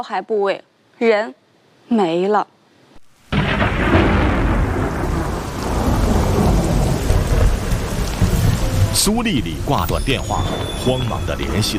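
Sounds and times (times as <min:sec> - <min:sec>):
speech: 0:00.0 - 0:02.6, 0:09.0 - 0:11.7
heavy rain: 0:03.0 - 0:11.7
deep rumbling thunder: 0:03.3 - 0:11.7.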